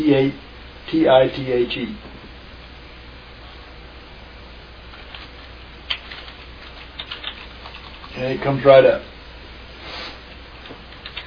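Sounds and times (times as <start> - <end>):
speech: 0.0 - 2.1, 8.2 - 9.1
quiet hiss: 0.0 - 11.2
typing on a computer keyboard: 5.0 - 8.2, 10.6 - 11.2.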